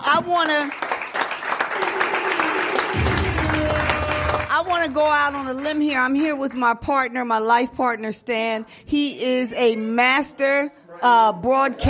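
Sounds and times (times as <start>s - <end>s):
speech: 0.2s - 0.8s, 4.7s - 11.8s
audience applause: 0.6s - 4.9s.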